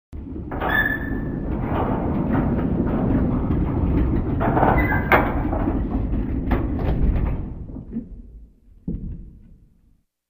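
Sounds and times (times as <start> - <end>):
castle gate mechanism: 0.3 - 7.7.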